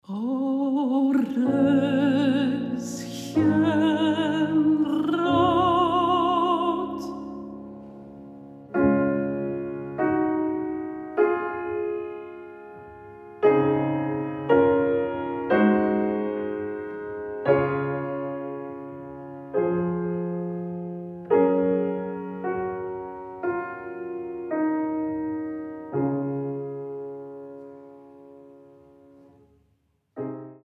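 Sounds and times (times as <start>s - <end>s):
person singing: 0.0s - 7.5s
piano: 0.0s - 30.6s.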